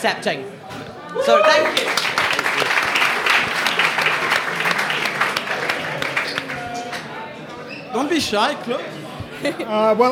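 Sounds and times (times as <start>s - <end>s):
speech: 0.0s - 2.1s, 7.9s - 10.1s
room full of people cheering and clapping: 1.1s - 7.2s.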